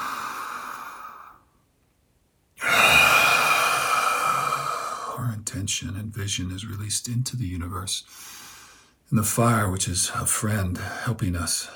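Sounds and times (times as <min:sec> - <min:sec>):
deep breath during guided meditation: 0:00.0 - 0:01.5, 0:02.6 - 0:05.2, 0:08.1 - 0:09.0
speech: 0:05.5 - 0:08.4, 0:09.1 - 0:11.7.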